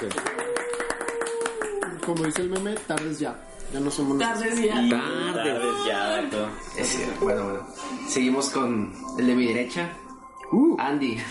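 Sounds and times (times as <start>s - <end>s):
speech: 0.0s - 0.3s, 2.1s - 11.2s
crowd applause: 0.0s - 2.7s.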